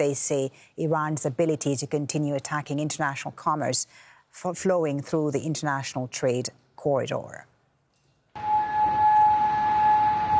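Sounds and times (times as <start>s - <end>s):
speech: 0.0s - 7.5s
air raid sirens wailing in Kuwait and Bahrain: 8.4s - 10.3s.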